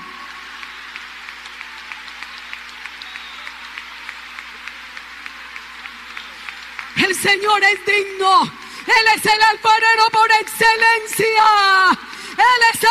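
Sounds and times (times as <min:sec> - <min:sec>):
audience applause: 0:00.0 - 0:08.8
speech: 0:07.1 - 0:12.8.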